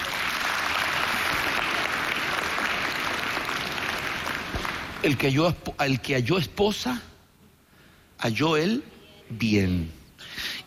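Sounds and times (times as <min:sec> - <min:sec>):
audience applause: 0:00.0 - 0:05.3
speech: 0:05.0 - 0:07.1, 0:08.2 - 0:10.6.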